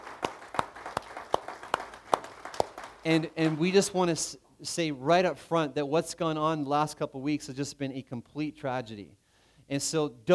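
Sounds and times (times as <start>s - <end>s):
audience applause: 0.0s - 3.7s
speech: 3.0s - 10.3s.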